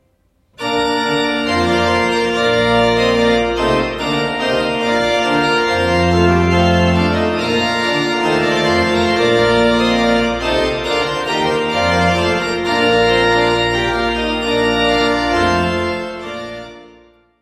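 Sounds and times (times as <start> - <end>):
trumpet piece: 0.6 - 17.2.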